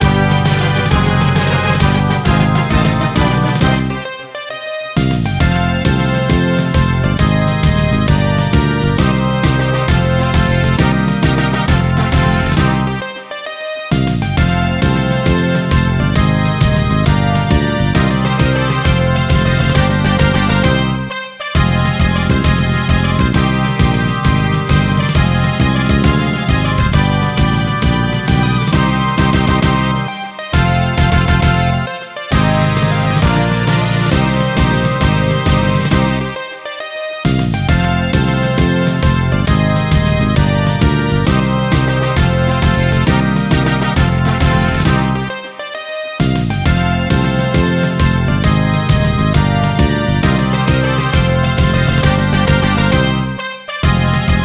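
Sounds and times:
game music general event: 0:00.0 - 0:54.4.

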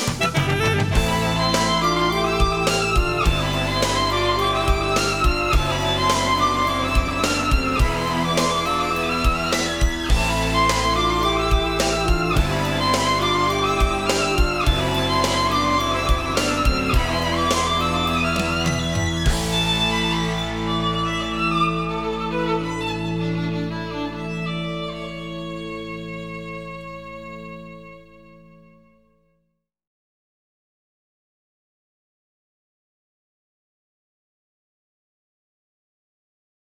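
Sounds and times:
arranged music: 0:00.0 - 0:25.1.

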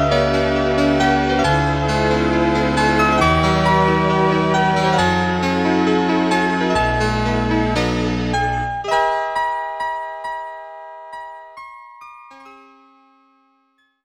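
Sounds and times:
background music: 0:00.0 - 0:09.4.

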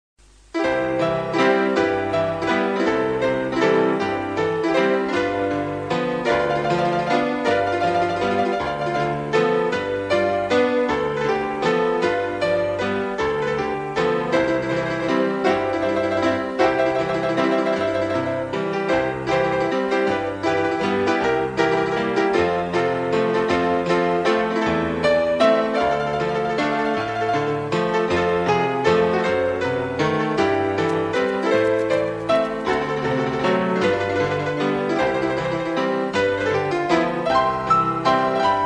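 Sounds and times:
saloon piano: 0:00.2 - 0:38.6.

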